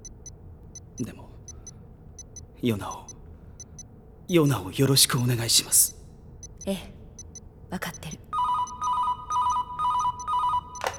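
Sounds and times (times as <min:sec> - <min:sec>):
speech: 0:01.0 - 0:01.3, 0:02.6 - 0:03.2, 0:04.3 - 0:06.0, 0:06.6 - 0:07.0, 0:07.7 - 0:08.2
electronic telephone ringtone for an incoming call: 0:08.4 - 0:10.9.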